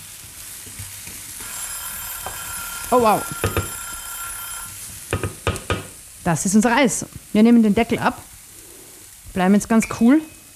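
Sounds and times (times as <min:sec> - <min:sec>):
tofu sizzling and caramelizing in frying pan: 0:00.0 - 0:10.5
speech: 0:02.9 - 0:03.6, 0:06.3 - 0:08.3, 0:09.4 - 0:10.4.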